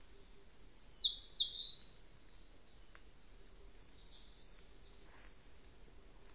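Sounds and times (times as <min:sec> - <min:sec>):
bird calling: 0:00.1 - 0:02.0, 0:03.7 - 0:06.1.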